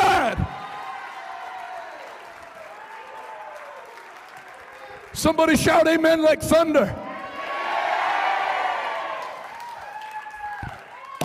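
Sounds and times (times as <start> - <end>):
audience clapping hands: 0.2 - 6.1, 8.4 - 11.2
speech: 5.2 - 7.0.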